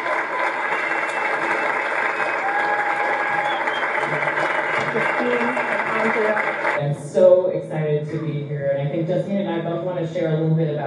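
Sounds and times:
audience clapping: 0.0 - 7.0
speech: 4.9 - 10.8.

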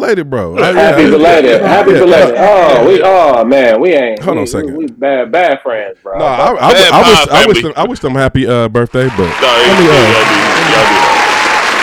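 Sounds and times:
speech: 0.0 - 11.2
audience applause for a birthday: 9.0 - 11.8.

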